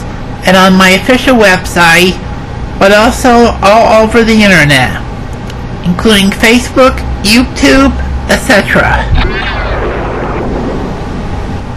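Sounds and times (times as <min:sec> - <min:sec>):
speech: 0:00.5 - 0:02.2, 0:02.8 - 0:05.1, 0:05.8 - 0:09.7
zapping sound effect: 0:09.1 - 0:11.2.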